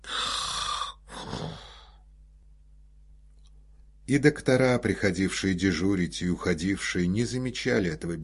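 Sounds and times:
man snoring while asleep: 0:00.0 - 0:02.0
speech: 0:04.1 - 0:08.2.

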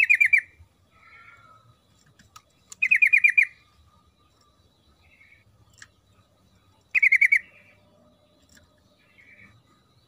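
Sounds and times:
Yellow-vented bulbul song: 0:00.0 - 0:10.0.

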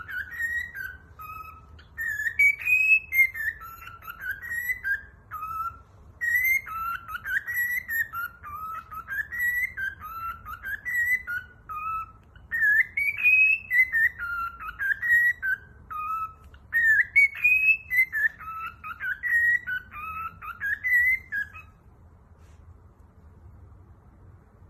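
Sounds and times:
cockatiel whistled song: 0:00.0 - 0:21.9.

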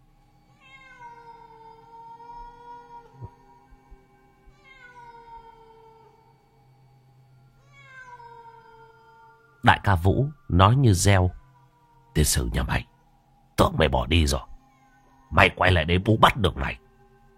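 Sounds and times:
low hum: 0:00.0 - 0:17.3
cat meowing plaintively in a kitchen: 0:00.6 - 0:03.6, 0:04.5 - 0:06.4, 0:07.6 - 0:13.0
speech: 0:09.6 - 0:11.4, 0:12.2 - 0:12.9, 0:13.6 - 0:14.5, 0:15.3 - 0:16.8.

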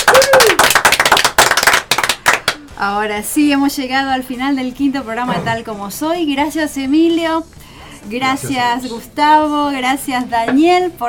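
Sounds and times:
audience applause on a television talk show: 0:00.0 - 0:02.6
speech: 0:02.8 - 0:11.0.

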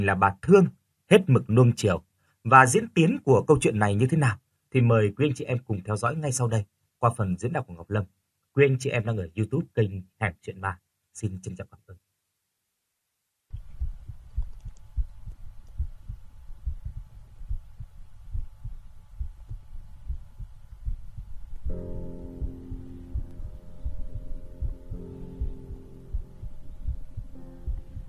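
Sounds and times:
speech: 0:00.0 - 0:12.0
hospital ventilator running with a rhythmic low throbbing: 0:13.5 - 0:28.0
humming tone: 0:13.6 - 0:28.0.

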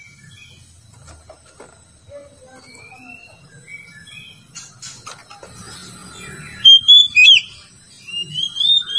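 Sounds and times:
Oriental magpie-robin singing: 0:02.3 - 0:08.9.

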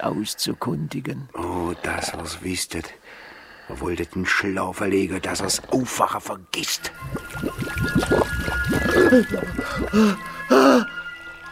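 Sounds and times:
speech: 0:00.0 - 0:11.0
water poured over a person as a radio play effect: 0:06.8 - 0:10.5.

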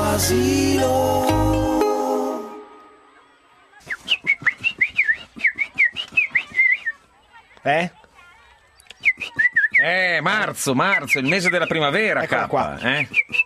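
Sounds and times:
speech: 0:00.2 - 0:01.3, 0:07.7 - 0:08.0, 0:10.2 - 0:13.4
person whistling a tune: 0:03.9 - 0:06.9, 0:09.0 - 0:09.9, 0:12.9 - 0:13.4.

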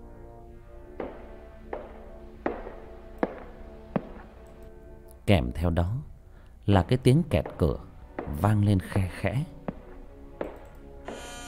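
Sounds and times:
footsteps echoing: 0:00.9 - 0:04.6, 0:06.8 - 0:11.4
speech: 0:05.3 - 0:06.1, 0:06.7 - 0:09.6.

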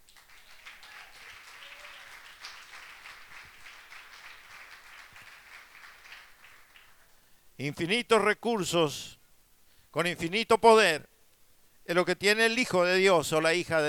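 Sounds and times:
audience applause at a church service: 0:00.0 - 0:07.1
speech: 0:07.6 - 0:09.2, 0:10.0 - 0:11.1, 0:11.9 - 0:13.8.

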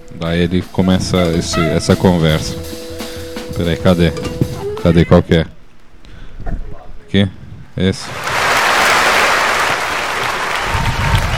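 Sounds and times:
speech: 0:00.2 - 0:02.8, 0:03.6 - 0:05.6, 0:07.1 - 0:08.3
studio audience applauding: 0:08.0 - 0:11.3.

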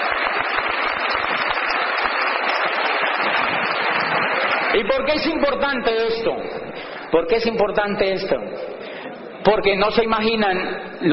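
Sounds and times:
crowd clapping: 0:00.0 - 0:05.5
speech: 0:04.8 - 0:08.7, 0:09.4 - 0:11.1.

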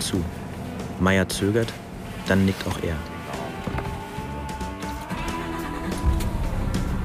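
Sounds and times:
speech: 0:00.0 - 0:00.4, 0:01.0 - 0:03.1
stationary truck engine idling: 0:04.3 - 0:07.0.

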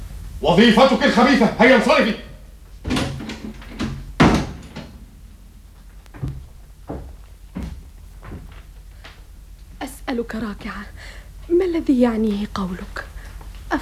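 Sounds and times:
speech: 0:00.4 - 0:02.3, 0:10.2 - 0:13.1
door being closed: 0:02.8 - 0:05.4.

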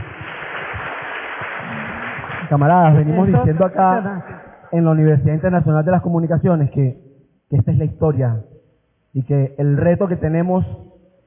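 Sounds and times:
crowd applauding: 0:00.0 - 0:04.7
speech: 0:02.5 - 0:08.5, 0:09.1 - 0:10.9.

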